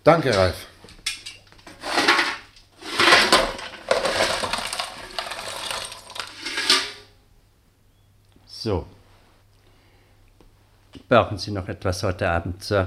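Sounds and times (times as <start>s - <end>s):
speech: 0.0s - 0.7s, 8.6s - 9.0s, 11.1s - 12.8s
lumps of coal tipped into a fireplace: 0.2s - 7.1s.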